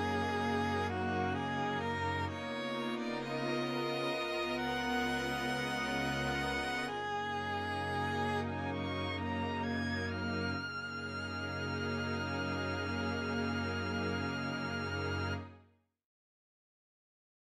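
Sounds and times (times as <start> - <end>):
soft synth violin: 0.0 - 15.7.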